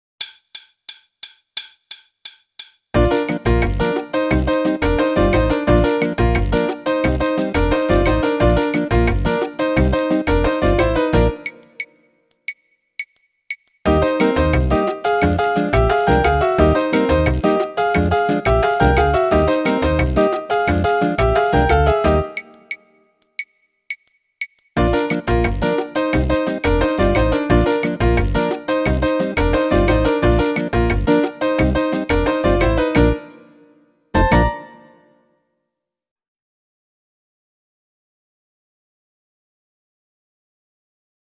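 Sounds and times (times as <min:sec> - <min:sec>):
mambo music: 0:03.0 - 0:11.9, 0:13.9 - 0:22.8, 0:24.8 - 0:33.6, 0:34.2 - 0:35.0.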